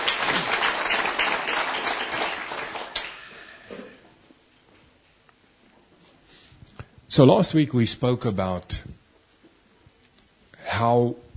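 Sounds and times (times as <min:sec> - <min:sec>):
church congregation applauding during a worship service: 0:00.0 - 0:03.5
speech: 0:07.2 - 0:09.0, 0:10.8 - 0:11.2.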